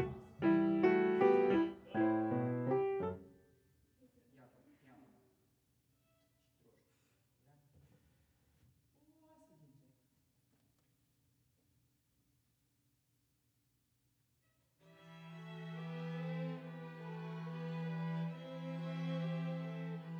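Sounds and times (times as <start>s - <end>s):
piano: 0.0s - 3.5s, 15.0s - 20.1s.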